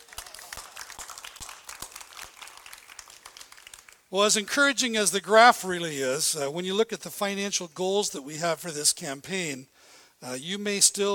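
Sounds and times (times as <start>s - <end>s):
audience applause: 0.0s - 4.0s
speech: 4.1s - 11.1s.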